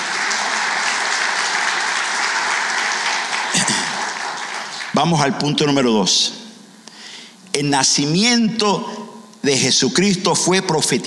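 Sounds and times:
audience clapping loudly: 0.0s - 5.8s
speech: 5.0s - 6.4s, 7.6s - 11.0s.

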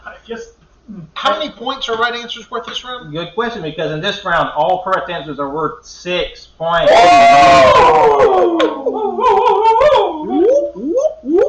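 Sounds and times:
speech: 0.2s - 9.8s
people imitating whale calls: 7.3s - 11.4s.

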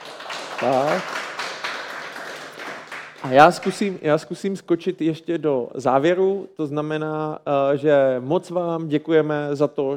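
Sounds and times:
clapping: 0.0s - 3.9s
speech: 0.6s - 1.2s, 3.2s - 9.9s.

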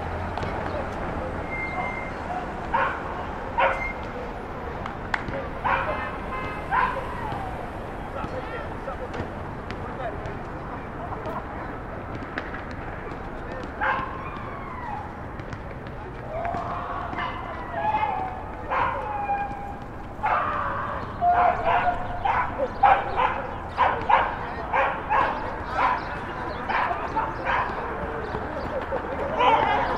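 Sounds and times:
low hum of traffic from a Brooklyn rooftop on Starr Street: 0.0s - 29.9s
voices: 0.0s - 29.9s
dog barking: 2.7s - 4.0s, 5.6s - 7.1s, 13.8s - 14.1s, 17.2s - 19.4s, 20.2s - 20.6s, 21.2s - 26.1s, 26.7s - 27.8s, 29.4s - 29.8s.

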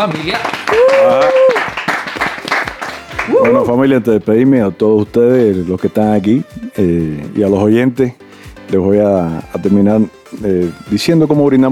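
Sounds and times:
speech: 0.0s - 1.6s, 3.4s - 11.6s
audience applause: 0.0s - 3.6s.

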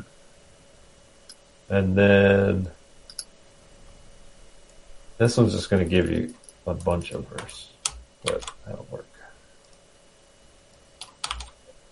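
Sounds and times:
speech: 1.7s - 2.8s, 5.2s - 9.1s
fingers typing on a computer keyboard: 6.2s - 8.6s, 11.0s - 11.6s.

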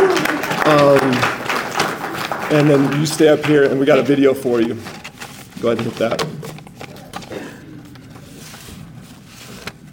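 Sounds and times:
audience round of applause: 0.0s - 4.5s
speech: 0.7s - 1.1s, 2.5s - 5.0s, 5.6s - 6.4s.

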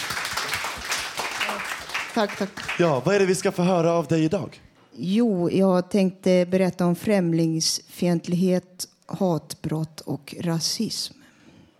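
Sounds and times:
audience applause: 0.0s - 3.7s
speech: 1.5s - 11.2s.

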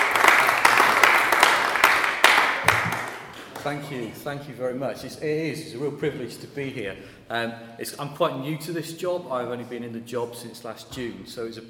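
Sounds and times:
audience applause: 0.0s - 3.8s
speech: 3.6s - 11.6s.

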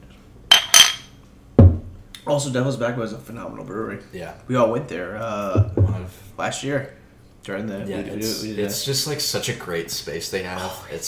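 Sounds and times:
glasses clinking in a toast: 0.5s - 1.2s
speech: 2.3s - 11.0s.

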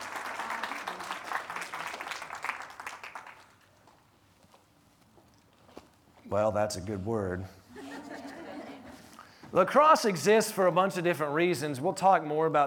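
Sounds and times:
audience applause: 0.0s - 4.0s
speech: 6.3s - 7.6s, 9.5s - 12.6s
laughter: 7.7s - 9.2s.

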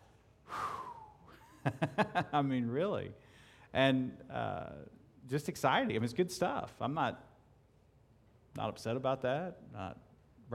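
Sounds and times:
deep breath: 0.4s - 1.5s, 3.2s - 3.8s
speech: 1.6s - 7.3s, 8.6s - 10.5s.

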